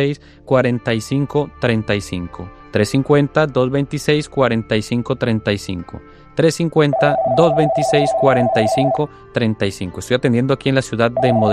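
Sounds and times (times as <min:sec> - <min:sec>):
speech: 0:00.0 - 0:11.5
telephone signalling an incoming call: 0:06.9 - 0:09.0, 0:11.2 - 0:11.5.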